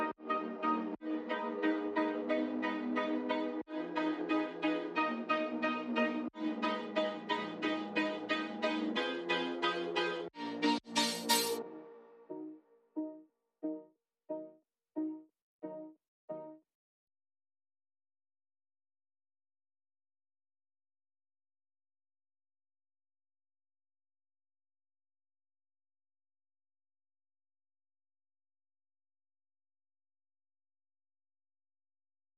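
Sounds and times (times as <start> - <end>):
synth pads: 0.0 - 14.5.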